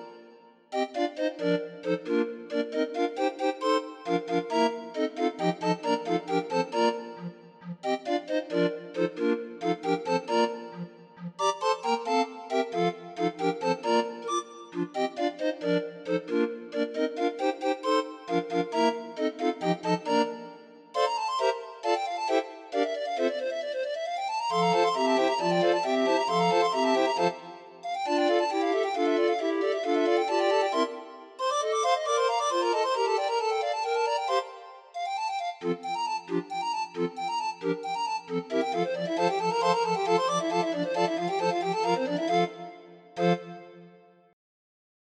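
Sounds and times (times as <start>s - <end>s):
barrel organ music: 0.7s - 44.0s.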